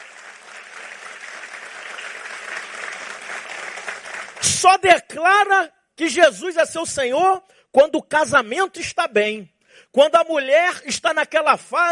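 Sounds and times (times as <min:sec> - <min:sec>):
audience applause: 0:00.0 - 0:04.6
speech: 0:04.5 - 0:11.9.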